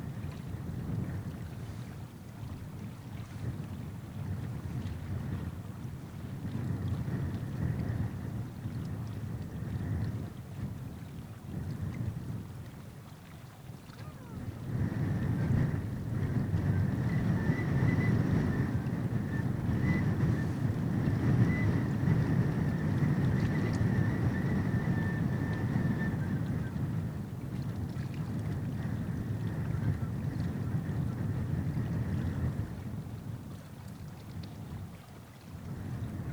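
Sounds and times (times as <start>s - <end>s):
wind: 0.0s - 36.3s.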